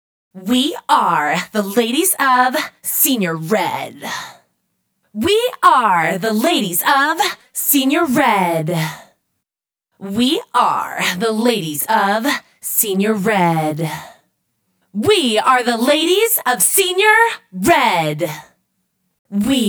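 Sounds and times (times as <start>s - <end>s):
processed vocals: 0.4s - 4.4s, 5.2s - 9.1s, 10.0s - 14.1s, 15.0s - 18.5s, 19.3s - 19.6s.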